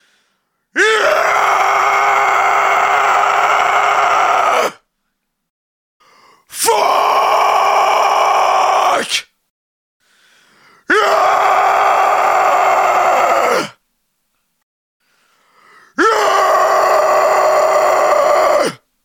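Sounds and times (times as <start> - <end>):
angry screams: 0.8 - 4.8, 6.5 - 9.3, 10.9 - 13.8, 16.0 - 18.8.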